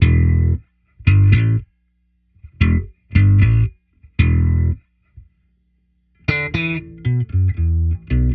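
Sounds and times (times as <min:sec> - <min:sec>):
classic slap electric bass: 0:00.0 - 0:01.7, 0:02.4 - 0:04.8, 0:06.3 - 0:08.3.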